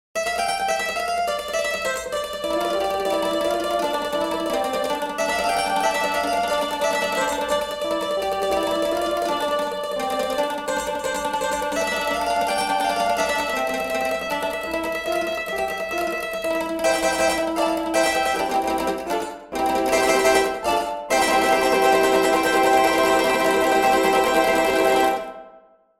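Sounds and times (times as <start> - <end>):
mandolin: 0.2 - 25.7.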